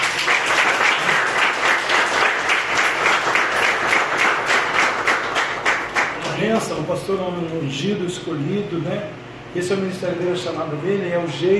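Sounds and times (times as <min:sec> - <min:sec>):
audience applauding: 0:00.0 - 0:06.4
speech: 0:06.6 - 0:11.5.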